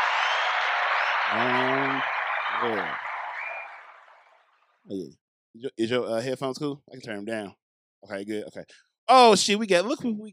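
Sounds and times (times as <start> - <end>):
applause: 0.0 - 4.4
speech: 2.6 - 3.1, 4.9 - 10.3.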